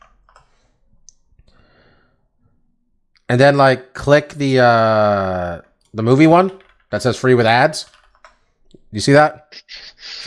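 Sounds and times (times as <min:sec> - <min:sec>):
typing on a computer keyboard: 0:00.0 - 0:00.6, 0:07.8 - 0:08.8
speech: 0:03.3 - 0:08.0, 0:08.9 - 0:10.2.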